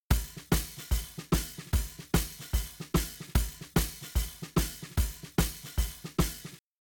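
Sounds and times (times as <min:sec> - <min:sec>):
shuffle drums: 0:00.0 - 0:06.6.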